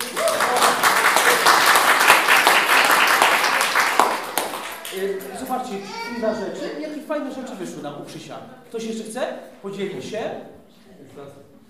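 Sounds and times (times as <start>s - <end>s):
crowd applause: 0.0s - 5.5s
speech: 5.7s - 11.6s.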